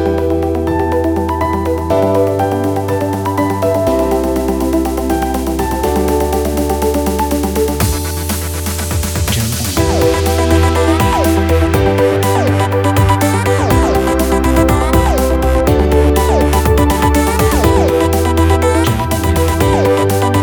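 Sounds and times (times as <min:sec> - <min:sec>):
uplifting EDM tech track: 0:00.0 - 0:20.4.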